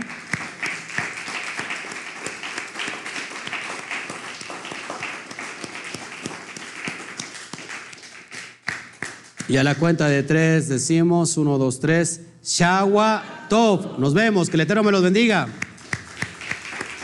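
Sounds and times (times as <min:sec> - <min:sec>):
applause: 0:00.0 - 0:09.8, 0:14.4 - 0:17.0
speech: 0:09.5 - 0:15.6.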